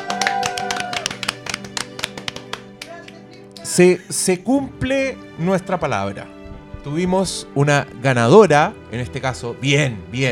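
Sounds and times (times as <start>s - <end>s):
audience applause: 0.0s - 3.2s
speech: 3.8s - 10.3s.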